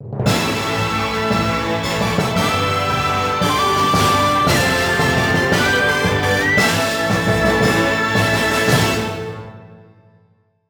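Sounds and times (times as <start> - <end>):
horse racing cup: 0.3 - 9.2.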